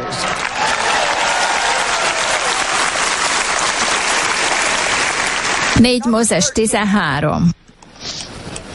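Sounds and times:
audience applauding: 0:00.0 - 0:05.9
speech: 0:05.8 - 0:07.6.

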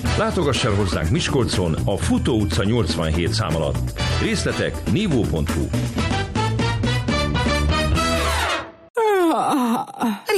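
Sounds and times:
bright music: 0:00.0 - 0:08.7
speech: 0:00.2 - 0:06.2
woman yawning: 0:09.0 - 0:10.3.

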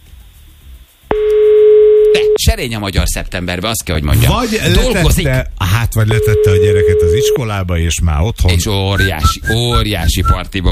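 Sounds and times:
telephone calling signal while placing a call: 0:01.1 - 0:02.4, 0:06.1 - 0:07.4
speech: 0:02.2 - 0:10.7.

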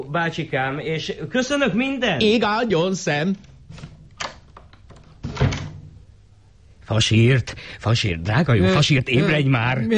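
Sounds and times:
speech: 0:00.0 - 0:03.8, 0:06.9 - 0:09.9
door shutting with heavy thunk: 0:05.2 - 0:05.9.

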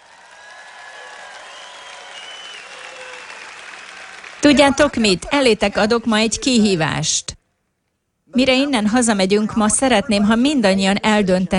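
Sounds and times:
audience applause: 0:00.0 - 0:05.2
speech: 0:04.4 - 0:07.4, 0:08.3 - 0:11.5.

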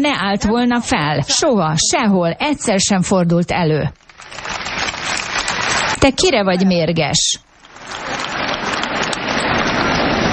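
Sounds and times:
speech: 0:00.0 - 0:04.5, 0:06.0 - 0:07.5
quiet audience applause: 0:04.2 - 0:06.0, 0:07.6 - 0:10.3.

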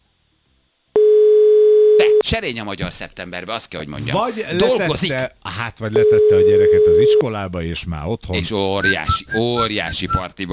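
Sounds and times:
telephone call tone while phoning a listener: 0:01.0 - 0:02.3, 0:06.0 - 0:07.2, 0:08.8 - 0:10.2
speech: 0:02.3 - 0:10.5.

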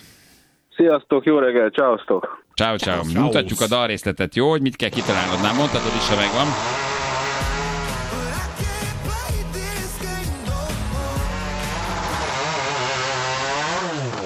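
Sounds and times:
speech: 0:00.8 - 0:06.8
chainsaw revving: 0:04.9 - 0:14.2.

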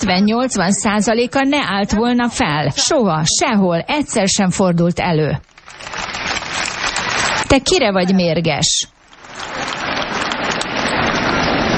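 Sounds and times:
speech: 0:00.0 - 0:06.7, 0:07.5 - 0:09.8
quiet audience applause: 0:05.6 - 0:07.8, 0:09.0 - 0:11.7.

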